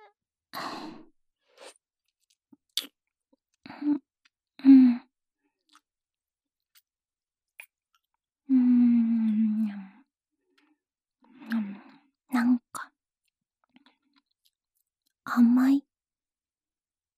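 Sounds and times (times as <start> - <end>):
soft chewing and mouth sounds eating an aphrodisiac: 1.5 - 4.6, 5.4 - 8.4, 9.1 - 15.4.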